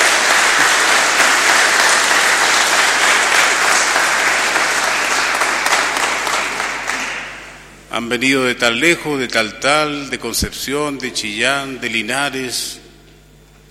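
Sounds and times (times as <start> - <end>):
loud applause for the pilgrims: 0.0 - 7.7
speech: 8.0 - 12.8.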